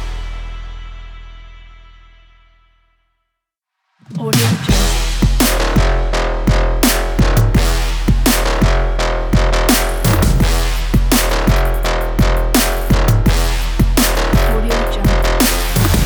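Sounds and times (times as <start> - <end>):
sport motivational trap music: 4.2 - 16.0.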